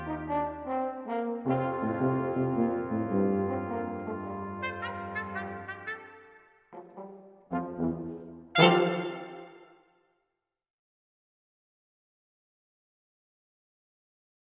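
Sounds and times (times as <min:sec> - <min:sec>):
brass ensemble playing medieval carols: 0:00.0 - 0:09.7.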